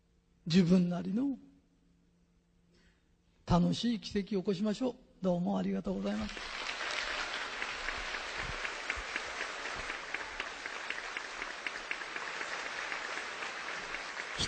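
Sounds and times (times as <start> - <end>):
speech: 0.5 - 1.5, 3.5 - 6.6
audience applause: 6.2 - 14.4.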